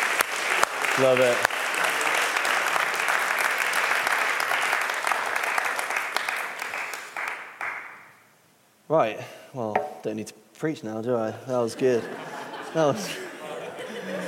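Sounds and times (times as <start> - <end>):
crowd applause: 0.0 - 7.8
speech: 1.0 - 1.5, 8.9 - 13.2
laughter: 11.7 - 14.2.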